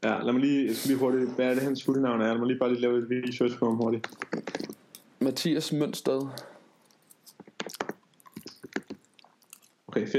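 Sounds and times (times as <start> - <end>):
speech: 0.0 - 6.5, 10.0 - 10.1
chewing thick gum with loud smacking: 4.0 - 5.1, 6.2 - 9.9.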